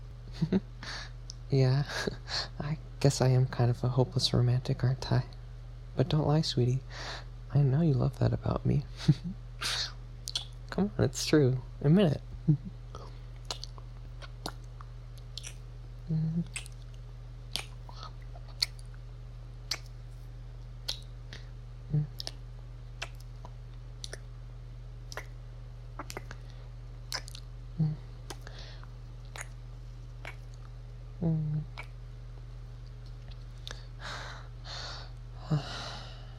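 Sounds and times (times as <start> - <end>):
low steady hum: 0.0 - 36.3
speech: 0.4 - 0.7, 1.5 - 5.4, 6.0 - 9.8, 10.8 - 12.8, 16.1 - 16.6
kissing lip smacks: 9.6 - 10.6, 13.4 - 16.9, 17.5 - 18.9, 19.7 - 20.0, 20.8 - 22.4, 23.0 - 24.3, 25.1 - 25.4, 26.0 - 26.5, 27.1 - 28.5, 29.2 - 29.6, 30.2 - 32.0.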